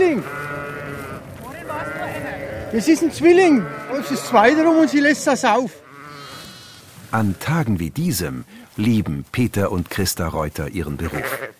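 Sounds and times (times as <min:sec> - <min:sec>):
speech: 0:00.0 - 0:00.5, 0:02.7 - 0:05.8, 0:07.1 - 0:11.5
sheep bleating: 0:00.0 - 0:06.9, 0:10.9 - 0:11.5.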